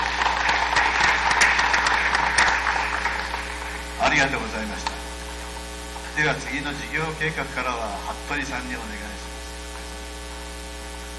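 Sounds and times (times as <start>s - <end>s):
applause approving a motion: 0.0s - 5.0s
speech: 4.1s - 4.9s, 6.2s - 9.2s.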